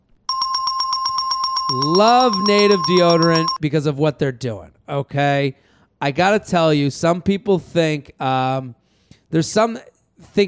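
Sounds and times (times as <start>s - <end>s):
bell ringing sound effect: 0.3s - 3.6s
speech: 1.7s - 10.4s.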